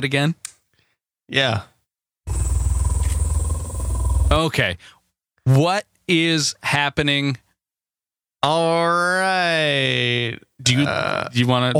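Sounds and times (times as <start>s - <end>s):
speech: 0.0s - 0.5s, 1.3s - 1.7s, 4.3s - 7.4s, 8.4s - 11.7s
purring breathing: 2.3s - 4.4s.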